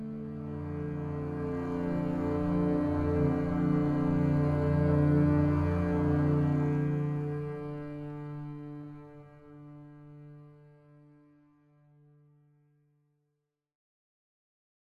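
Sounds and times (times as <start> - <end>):
string ensemble: 0.0 - 11.2.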